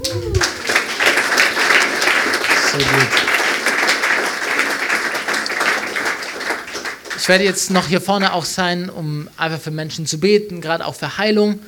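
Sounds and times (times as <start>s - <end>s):
cheering: 0.0s - 7.0s
audience applause: 0.0s - 8.4s
speech: 2.8s - 3.2s, 7.2s - 11.6s.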